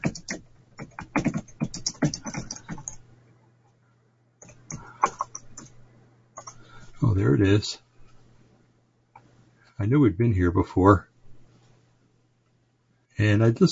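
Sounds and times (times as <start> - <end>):
typing on a computer keyboard: 0.0 - 3.0, 4.4 - 5.8, 6.4 - 6.6
low steady hum: 0.0 - 13.6
speech: 7.2 - 7.8, 9.8 - 11.1, 13.2 - 13.6.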